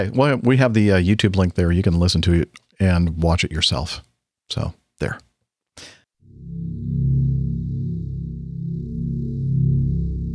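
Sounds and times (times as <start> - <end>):
speech: 0.0 - 6.0
drone music: 6.2 - 10.3.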